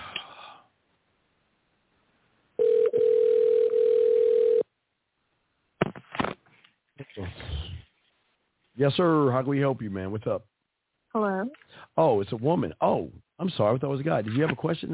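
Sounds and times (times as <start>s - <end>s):
telephone call ringing tone: 2.6s - 4.7s
speech: 8.8s - 10.5s, 11.1s - 14.9s.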